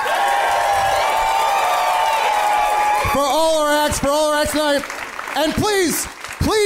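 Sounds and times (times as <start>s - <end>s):
audience cheering and whooping: 0.0s - 4.2s
audience applause: 0.0s - 6.6s
speech: 3.9s - 6.6s.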